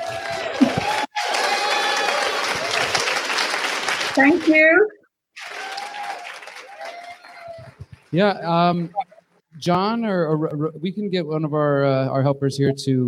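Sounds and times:
audience applause: 0.0 - 4.8, 5.4 - 8.7
speech: 4.2 - 5.0, 8.1 - 9.0, 9.6 - 13.0.

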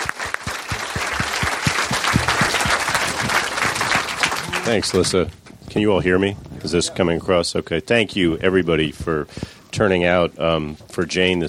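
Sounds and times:
audience applause: 0.0 - 5.2
speech: 4.7 - 11.4.

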